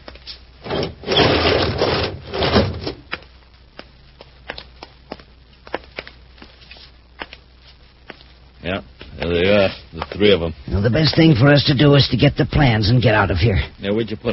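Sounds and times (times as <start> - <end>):
heavy door being opened: 0.6 - 3.0
speech: 9.6 - 14.3.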